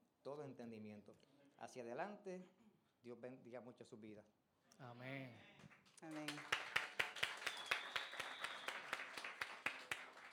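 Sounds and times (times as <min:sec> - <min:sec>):
speech: 0:00.2 - 0:06.7
audience applause: 0:06.1 - 0:10.3.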